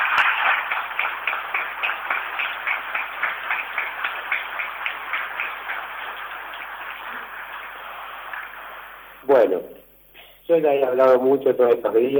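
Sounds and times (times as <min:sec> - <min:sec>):
audience applause: 0:00.0 - 0:09.2
speech: 0:09.3 - 0:09.8, 0:10.5 - 0:12.1.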